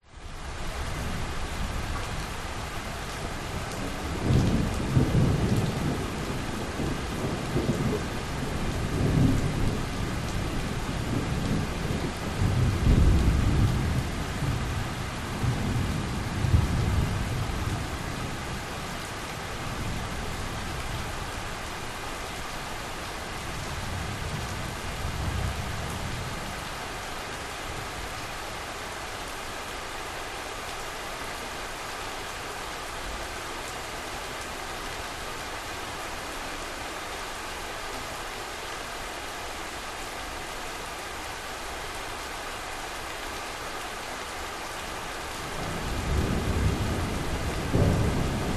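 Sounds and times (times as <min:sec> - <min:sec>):
heavy rain in Bali: 0:00.0 - 0:48.5
thunderstorm in Bali: 0:03.6 - 0:18.9, 0:45.6 - 0:48.5.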